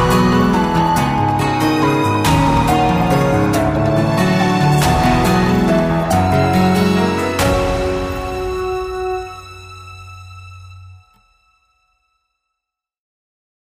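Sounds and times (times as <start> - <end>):
battle background music: 0.0 - 9.4.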